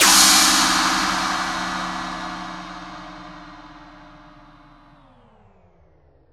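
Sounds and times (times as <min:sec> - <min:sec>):
crash impacts: 0:00.0 - 0:05.0.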